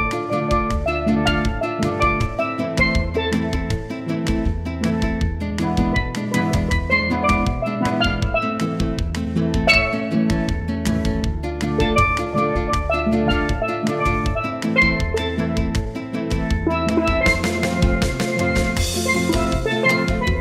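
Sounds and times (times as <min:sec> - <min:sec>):
steel drum band playing in A minor: 0:00.0 - 0:20.3.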